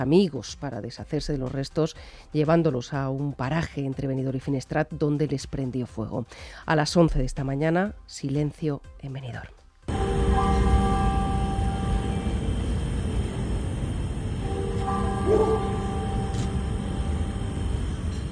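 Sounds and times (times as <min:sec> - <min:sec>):
speech: 0:00.0 - 0:10.0
church bells ringing in Benidorm: 0:09.9 - 0:18.3.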